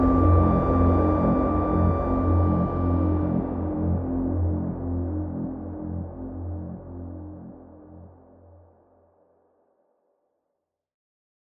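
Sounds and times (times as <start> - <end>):
organ drone: 0.0 - 7.4.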